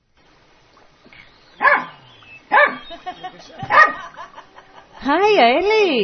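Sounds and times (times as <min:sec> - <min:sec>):
dog barking: 0:01.6 - 0:03.0, 0:03.6 - 0:04.1
dog yipping and whimpering: 0:01.6 - 0:03.0
laughter: 0:02.9 - 0:05.3
speech: 0:03.3 - 0:04.2, 0:05.0 - 0:06.0.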